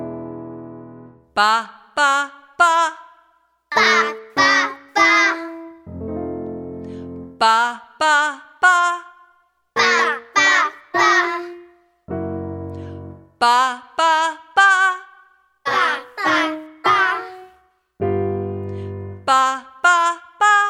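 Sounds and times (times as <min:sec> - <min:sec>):
person doing vocal warm-ups for singing: 0:01.2 - 0:05.8, 0:06.8 - 0:11.8, 0:12.7 - 0:17.6, 0:18.7 - 0:20.6.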